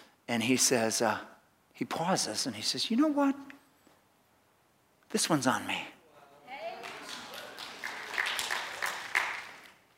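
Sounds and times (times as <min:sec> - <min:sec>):
speech: 0:00.3 - 0:03.6, 0:05.1 - 0:06.0
small round of applause: 0:06.6 - 0:09.9.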